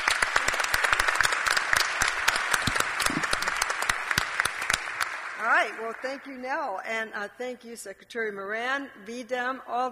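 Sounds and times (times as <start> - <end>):
audience applause: 0.0 - 6.0
speech: 5.9 - 9.9.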